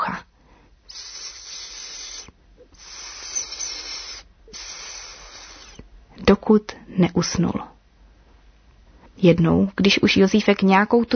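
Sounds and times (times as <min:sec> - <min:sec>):
snake hissing: 0:00.9 - 0:05.9
speech: 0:06.3 - 0:07.7, 0:09.2 - 0:11.1.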